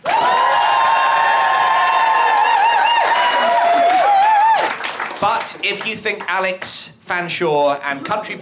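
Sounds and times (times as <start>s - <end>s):
audience cheers and whoops: 0.0s - 4.8s
studio audience applauding: 0.0s - 6.4s
speech: 5.2s - 8.4s.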